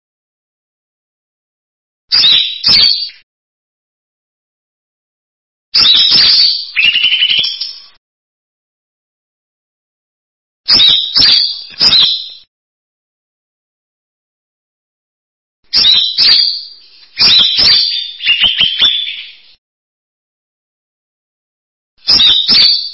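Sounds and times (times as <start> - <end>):
bird song: 2.1 - 3.2, 5.8 - 8.0, 10.7 - 12.5, 15.6 - 19.6, 22.0 - 22.9.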